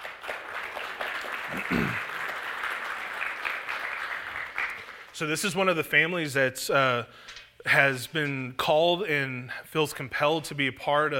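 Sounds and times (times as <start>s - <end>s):
audience applause welcoming a couple on stage at a young adults gathering: 0.0s - 5.2s
speech: 1.5s - 2.1s, 5.2s - 11.1s.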